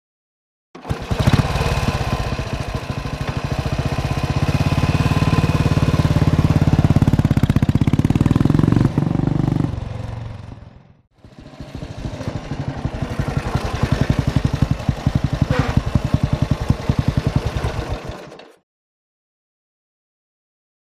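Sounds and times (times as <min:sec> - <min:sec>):
Norton motorcycle starting and pulling away: 0:00.8 - 0:18.6.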